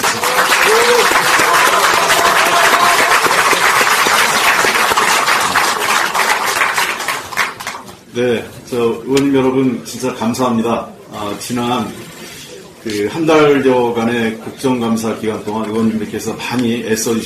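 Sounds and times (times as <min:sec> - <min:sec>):
audience applause: 0:00.0 - 0:07.9
speech: 0:08.2 - 0:12.1, 0:12.8 - 0:17.2.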